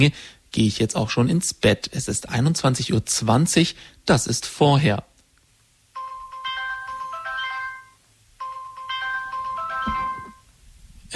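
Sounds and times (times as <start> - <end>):
speech: 0.0 - 5.1
alarm clock ringing: 6.0 - 10.5.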